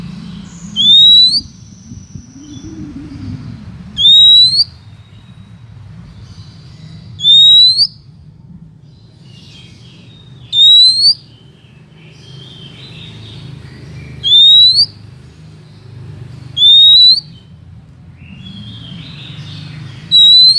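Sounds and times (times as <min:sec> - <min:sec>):
Oriental magpie-robin rising whistle: 0:00.7 - 0:03.4, 0:04.0 - 0:04.7, 0:07.2 - 0:08.0, 0:10.5 - 0:11.2, 0:14.2 - 0:15.0, 0:16.6 - 0:17.4, 0:20.1 - 0:20.5.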